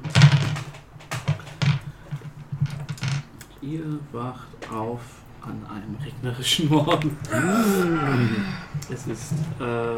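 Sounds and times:
percentile hundred-sided die tumbling across a hard surface: 0.0s - 3.4s
speech: 3.6s - 9.9s.

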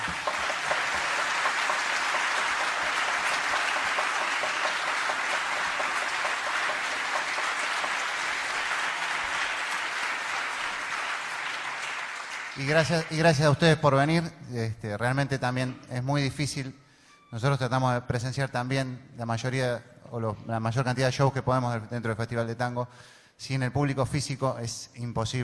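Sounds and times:
sustained applause from a large crowd: 0.0s - 13.4s
speech: 12.6s - 25.4s.

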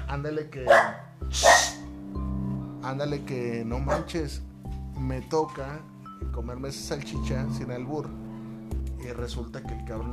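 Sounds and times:
speech: 0.1s - 1.6s, 2.8s - 8.2s, 9.0s - 10.1s
dog barking: 0.7s - 1.8s, 3.9s - 4.2s.

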